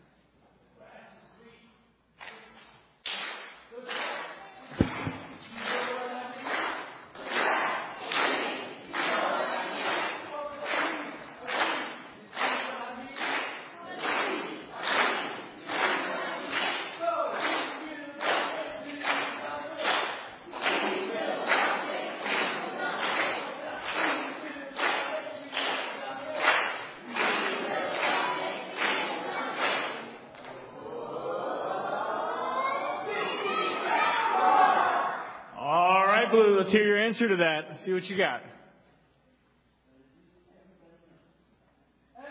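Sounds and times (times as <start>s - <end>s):
rhythmic claps or stomps: 2.2s - 30.6s
team chanting a rhythmic cheer in unison: 5.5s - 35.6s
speech: 36.7s - 38.4s.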